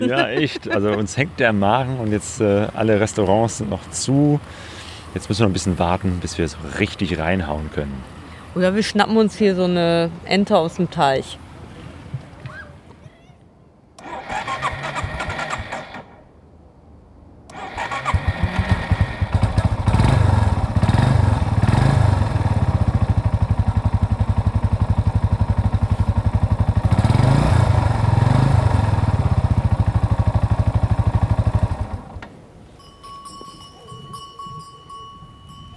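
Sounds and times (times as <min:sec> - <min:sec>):
laughter: 0:00.0 - 0:01.5
speech: 0:00.0 - 0:11.4
moped engine starting and idling: 0:14.0 - 0:16.2, 0:17.5 - 0:32.4.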